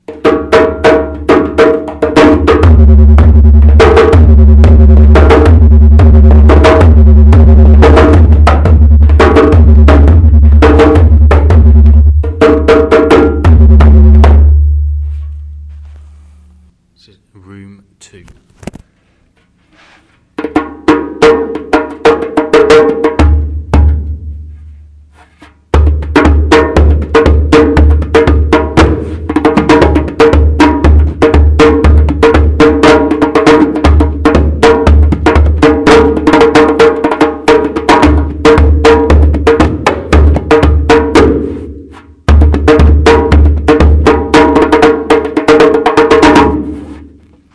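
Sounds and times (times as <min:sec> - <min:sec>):
djembe drumming in the catacombs: 0:00.0 - 0:15.2, 0:20.3 - 0:24.3, 0:25.7 - 0:47.0.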